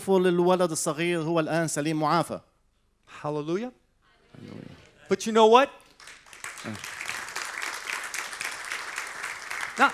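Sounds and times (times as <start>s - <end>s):
speech: 0.0s - 2.5s, 3.1s - 3.8s, 4.4s - 7.0s, 9.8s - 9.9s
audience applause: 6.0s - 9.9s.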